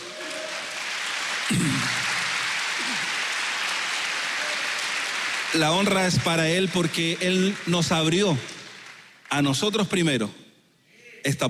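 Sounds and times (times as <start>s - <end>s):
audience applauding: 0.0s - 9.9s
speech: 1.5s - 2.1s, 5.5s - 8.6s, 9.3s - 10.4s, 11.2s - 11.4s.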